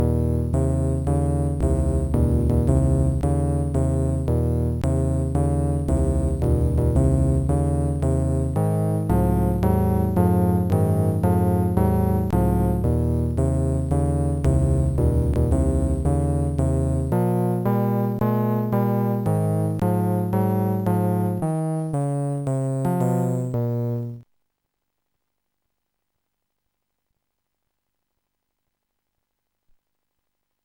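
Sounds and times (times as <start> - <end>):
boogie music: 0.0 - 24.2.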